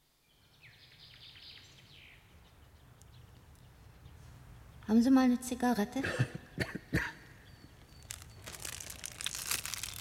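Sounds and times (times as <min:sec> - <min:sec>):
bird chirping in a corridor: 0:00.2 - 0:04.9, 0:07.3 - 0:09.9
speech: 0:04.9 - 0:07.0.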